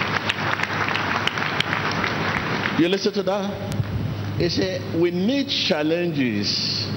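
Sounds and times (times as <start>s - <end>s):
audience applause: 0.0s - 3.2s
speech: 2.8s - 3.8s, 4.4s - 6.8s.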